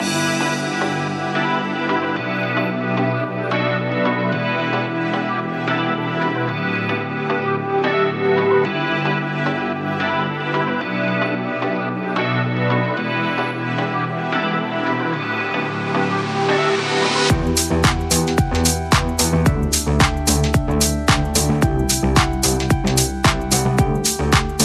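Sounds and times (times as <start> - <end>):
electro dance music: 0.0 - 24.6.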